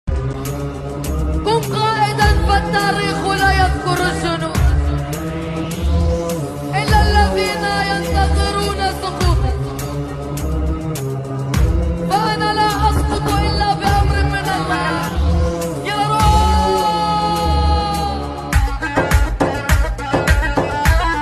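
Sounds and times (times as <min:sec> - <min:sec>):
Arabic music: 0:00.1 - 0:21.2.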